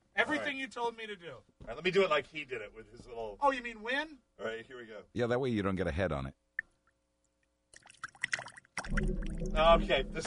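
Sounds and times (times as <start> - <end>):
speech: 0.3 - 6.4, 8.9 - 10.2
water spilling from a water cooler during a prank game: 7.8 - 9.7.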